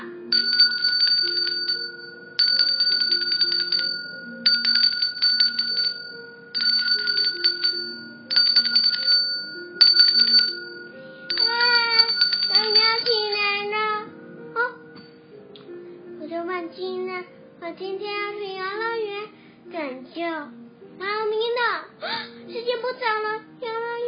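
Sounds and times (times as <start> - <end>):
alarm clock bell ringing: 0.0 - 13.8
soft melody: 0.0 - 24.0.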